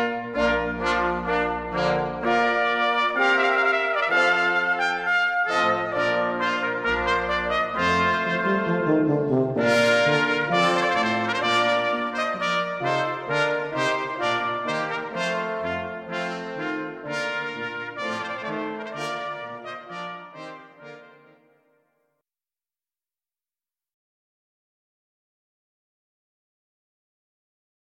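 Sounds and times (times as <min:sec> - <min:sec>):
brass band playing a trumpet voluntary: 0:00.0 - 0:21.5.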